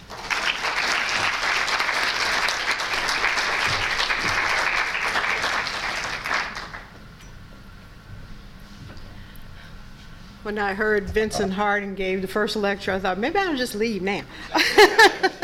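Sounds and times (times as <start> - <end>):
audience applause welcoming a lecturer: 0.0 - 7.0
speech: 10.5 - 15.4
laughter: 14.5 - 15.4.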